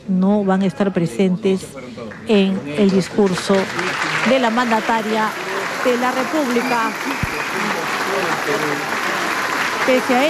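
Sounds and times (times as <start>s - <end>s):
speech: 0.1s - 7.3s, 9.8s - 10.2s
applause in parliament: 2.1s - 10.2s.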